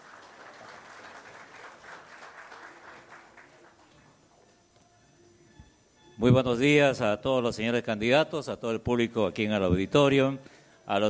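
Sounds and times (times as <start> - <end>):
audience applause in auditorium: 0.0 - 4.2
speech: 6.2 - 11.0.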